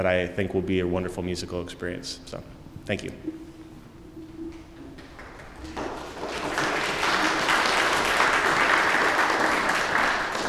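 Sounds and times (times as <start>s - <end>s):
speech: 0.0s - 3.4s
audience applause: 5.0s - 10.4s.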